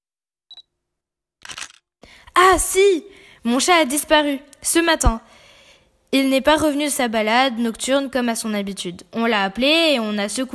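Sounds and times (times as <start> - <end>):
camera shutter click: 1.4 - 1.8
speech: 2.4 - 5.4, 6.1 - 10.5.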